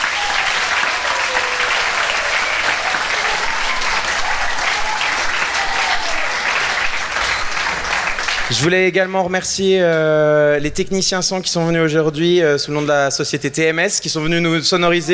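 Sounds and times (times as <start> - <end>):
audience applause: 0.0 - 8.7
speech: 8.5 - 15.1.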